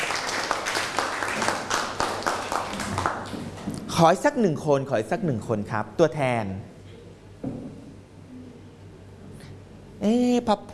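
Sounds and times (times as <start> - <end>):
people clapping: 0.0 - 3.8
speech: 4.0 - 6.7, 10.0 - 10.7.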